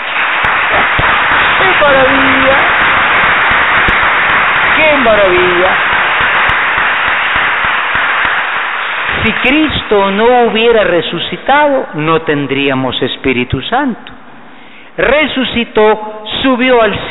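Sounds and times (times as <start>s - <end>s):
audience applauding: 0.0s - 10.9s
speech: 4.9s - 6.0s, 9.2s - 14.2s, 15.0s - 17.0s.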